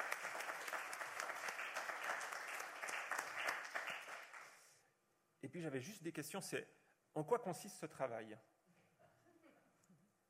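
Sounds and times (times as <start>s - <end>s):
audience applause: 0.0s - 4.7s
speech: 5.5s - 8.5s.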